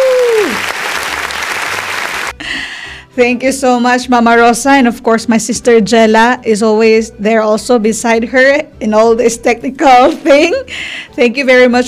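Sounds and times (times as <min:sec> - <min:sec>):
round of applause: 0:00.0 - 0:02.3
speech: 0:03.2 - 0:11.8.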